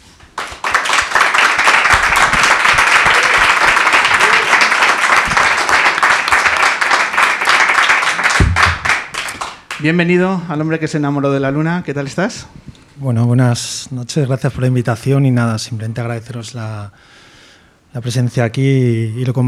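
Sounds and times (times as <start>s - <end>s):
crowd applauding: 0.0s - 10.2s
speech: 9.8s - 17.2s, 17.9s - 19.4s.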